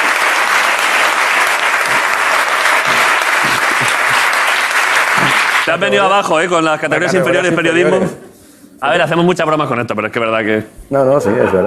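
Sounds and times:
audience applause: 0.0 - 6.3
speech: 5.7 - 11.6.

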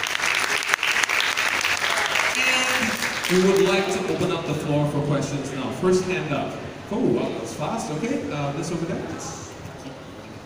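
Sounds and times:
audience applause: 0.0 - 4.2
speech: 3.3 - 9.5.

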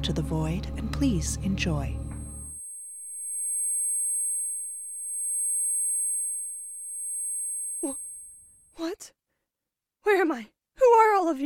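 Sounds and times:
speech: 0.0 - 2.0, 8.8 - 9.2, 10.0 - 11.4
high-pitched ear ringing tone: 1.9 - 8.5.

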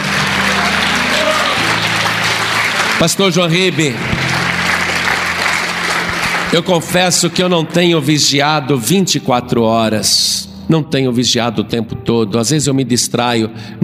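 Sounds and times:
audience applauding: 0.0 - 7.7
speech: 3.0 - 4.2, 6.5 - 13.8.

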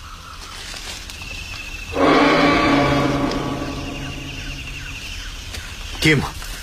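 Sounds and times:
tyrannosaurus roar: 2.0 - 4.8
speech: 6.0 - 6.4.

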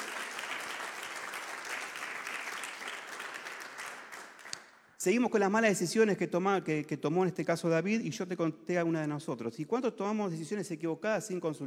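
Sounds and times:
audience applause: 0.0 - 4.7
speech: 5.0 - 11.6.

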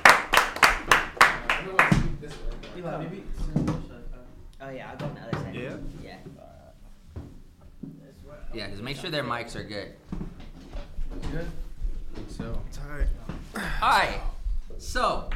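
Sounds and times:
audience clapping: 0.0 - 2.3
speech: 2.8 - 3.6, 4.6 - 6.6, 8.5 - 10.2, 11.2 - 11.6, 12.2 - 15.3.

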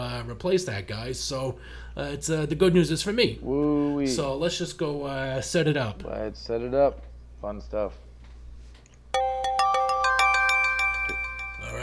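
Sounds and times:
speech: 0.2 - 8.0
device ringing tuneful chime: 9.2 - 11.8.

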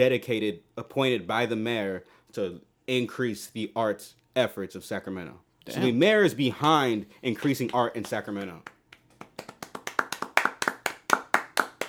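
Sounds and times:
speech: 0.0 - 8.8
hands clapping: 7.3 - 11.8.

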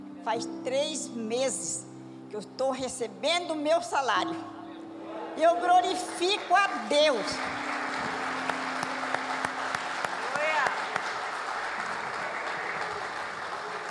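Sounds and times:
speech: 0.2 - 4.6, 5.4 - 7.7
audience applauding: 5.6 - 13.8.

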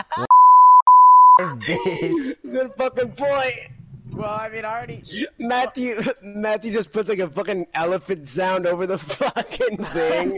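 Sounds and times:
laughter: 0.0 - 0.3, 1.4 - 3.0, 9.0 - 10.3
censor bleep tone: 0.3 - 1.4
clipped fragment of a voice: 1.4 - 5.8, 9.8 - 10.3
speech: 1.6 - 10.3.

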